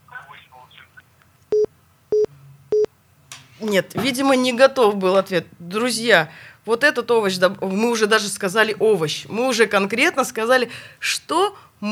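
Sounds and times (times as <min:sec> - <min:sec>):
faint low hum: 0:00.0 - 0:11.9
telephone line beeps: 0:01.5 - 0:02.9
speech: 0:03.6 - 0:11.9.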